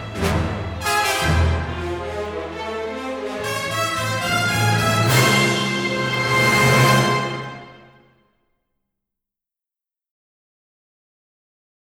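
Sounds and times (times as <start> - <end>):
cinematic opening music: 0.0 - 8.1.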